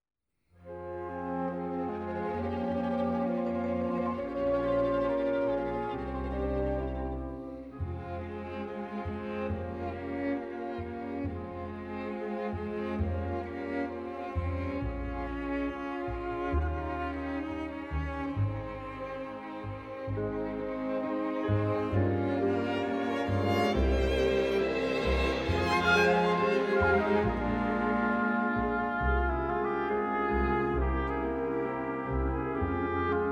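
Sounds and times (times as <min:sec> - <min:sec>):
instrumental music: 0:00.7 - 0:33.3.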